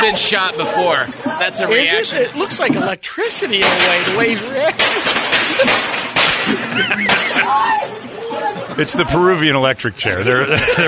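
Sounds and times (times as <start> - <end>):
laughter: 0.0 - 3.0, 3.9 - 10.8
speech: 0.0 - 8.0, 8.8 - 10.8
firecrackers exploding: 3.6 - 7.5.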